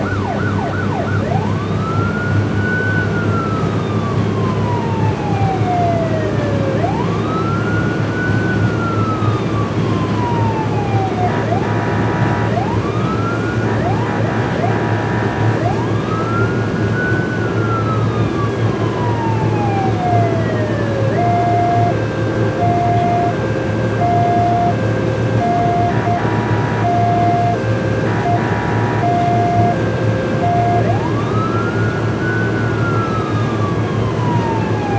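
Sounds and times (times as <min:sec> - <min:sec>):
police boat sirens: 0:00.0 - 0:34.9
police boat engine starting, driving and shutting off: 0:09.9 - 0:34.9.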